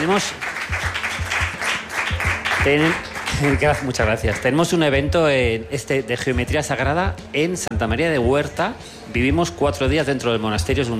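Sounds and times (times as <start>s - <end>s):
speech: 0.0s - 0.8s, 2.6s - 10.9s
audience applause: 0.1s - 4.4s.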